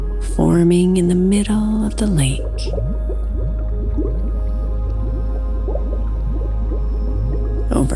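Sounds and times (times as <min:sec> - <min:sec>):
deep constant rumble: 0:00.0 - 0:07.9
speech: 0:00.4 - 0:03.1
bubbles rising through lake water: 0:01.5 - 0:07.9.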